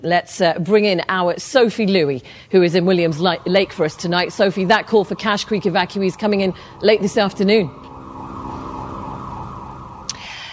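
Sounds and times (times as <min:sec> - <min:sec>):
speech: 0:00.0 - 0:07.8
police car siren: 0:02.4 - 0:10.5.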